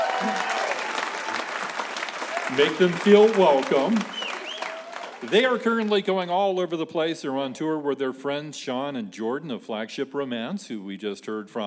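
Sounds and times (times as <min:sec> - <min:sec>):
audience applause: 0:00.0 - 0:06.1
speech: 0:02.5 - 0:04.2, 0:05.2 - 0:11.6.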